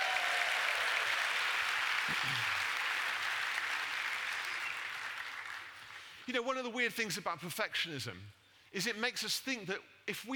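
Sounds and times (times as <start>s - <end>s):
audience cheering and applause: 0.0s - 5.7s
speech: 2.1s - 2.6s, 6.3s - 10.3s.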